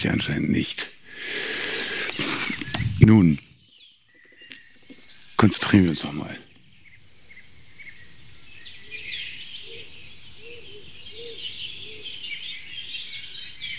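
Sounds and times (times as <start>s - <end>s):
speech: 0.0s - 1.4s, 3.0s - 3.5s, 5.4s - 6.5s
songbirds chirping outdoors: 0.0s - 13.7s
dove cooing: 8.8s - 12.4s.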